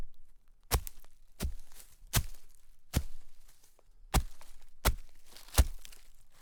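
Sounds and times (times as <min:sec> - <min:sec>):
walking in shallow snow: 0:00.7 - 0:06.4.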